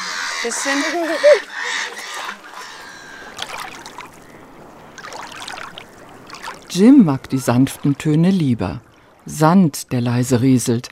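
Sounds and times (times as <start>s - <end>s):
ducks and gulls calling: 0.0s - 4.6s
low steady watery background: 0.0s - 10.9s
speech: 0.4s - 2.1s, 6.8s - 10.9s.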